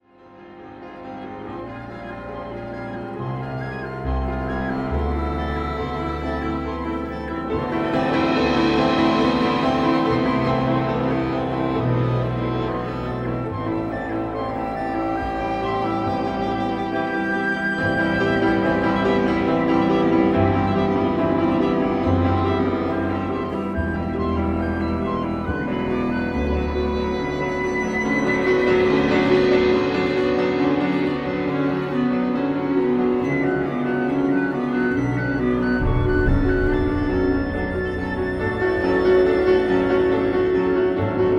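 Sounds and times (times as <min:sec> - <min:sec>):
etudes: 0:00.2 - 0:41.3.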